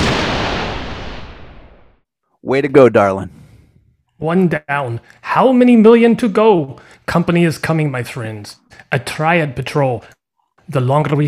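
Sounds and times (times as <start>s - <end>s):
lightning bolt strike: 0.0s - 2.0s
speech: 2.5s - 3.4s, 4.2s - 11.2s.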